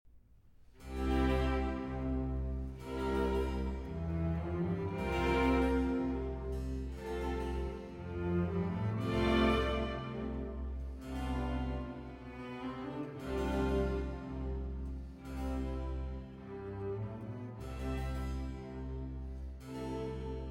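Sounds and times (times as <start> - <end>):
violin concerto slow movement in A minor: 0.8 - 20.4.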